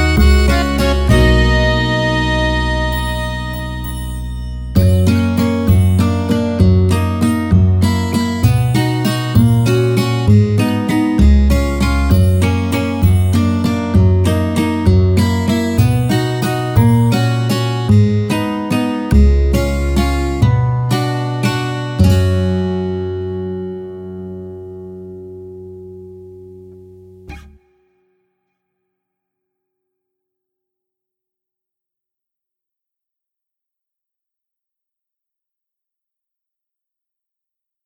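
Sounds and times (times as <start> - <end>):
acoustic background music: 0.0 - 27.6.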